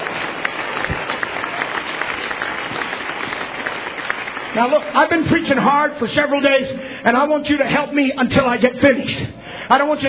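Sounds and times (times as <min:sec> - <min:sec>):
audience clapping hands: 0:00.0 - 0:05.7
speech: 0:04.6 - 0:10.0.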